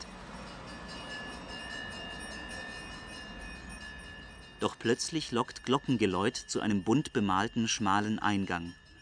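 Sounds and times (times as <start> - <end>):
heavy street traffic: 0.0 - 4.8
speech: 4.6 - 8.8.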